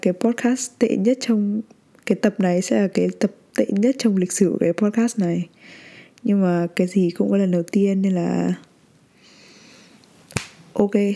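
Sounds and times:
speech: 0.0s - 8.7s, 10.8s - 11.1s
slipped finger snap: 10.3s - 10.6s.

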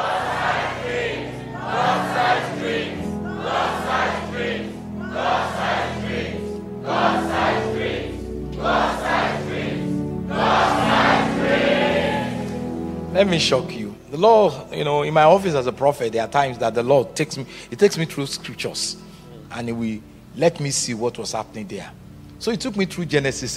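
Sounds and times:
large audience shouting a phrase in unison: 0.0s - 9.8s
continuous low hum of crowd noise: 0.0s - 12.9s
speech: 13.2s - 23.5s.

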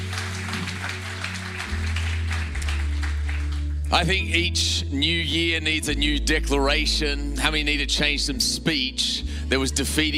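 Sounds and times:
church congregation applauding for people watching a service online: 0.0s - 4.3s
speech: 3.9s - 10.1s.

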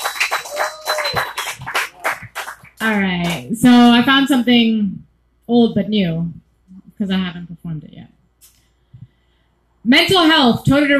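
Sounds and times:
audience applause: 0.0s - 3.5s
speech: 2.8s - 6.4s, 7.0s - 7.9s, 9.8s - 10.9s.

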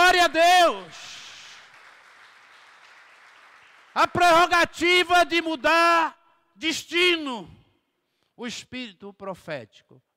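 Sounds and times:
speech: 0.2s - 1.0s, 4.0s - 7.6s, 8.4s - 10.1s
audience applause: 1.4s - 4.0s.

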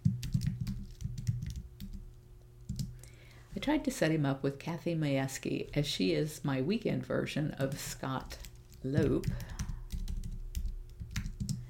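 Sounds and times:
typing on a computer keyboard: 0.0s - 2.0s, 2.7s - 2.9s, 8.3s - 11.6s
speech: 3.6s - 9.5s.

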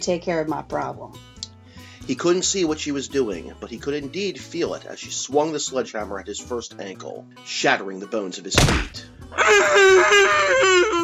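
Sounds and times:
speech: 0.0s - 1.3s, 2.1s - 11.0s
muffled wailing and crying under gag: 9.3s - 11.0s.

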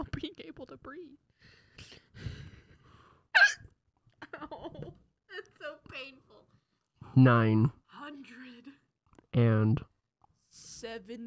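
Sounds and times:
speech: 0.0s - 2.4s, 7.2s - 8.4s, 9.4s - 9.9s, 10.8s - 11.2s
hiccup: 3.3s - 3.8s.

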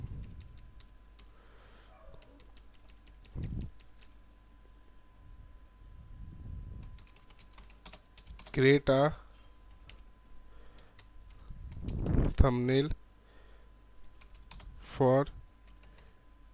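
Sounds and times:
typing on a computer keyboard: 0.0s - 1.3s, 2.1s - 4.2s, 6.8s - 8.6s, 9.7s - 10.0s, 10.8s - 12.2s, 14.0s - 14.7s, 15.6s - 16.1s
faint steady hum: 0.0s - 16.5s
speech: 8.6s - 9.2s, 12.4s - 13.0s.

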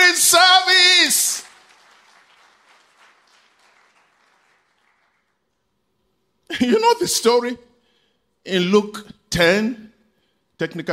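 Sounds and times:
speech: 0.2s - 1.3s, 6.6s - 7.7s, 8.4s - 9.9s, 10.6s - 10.9s
audience applause: 0.9s - 5.5s.

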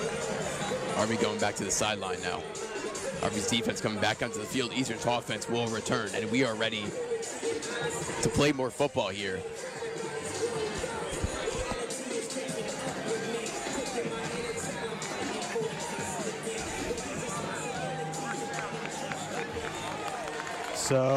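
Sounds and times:
football crowd cheering: 0.0s - 8.3s, 9.4s - 21.1s
speech: 1.0s - 2.6s, 3.2s - 9.7s, 20.9s - 21.1s.

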